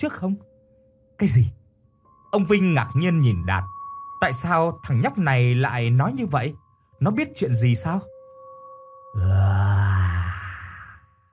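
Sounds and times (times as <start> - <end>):
speech: 0.0 - 0.5, 1.2 - 1.6, 2.3 - 8.1
ghostly moaning groans from many voices: 9.2 - 11.0.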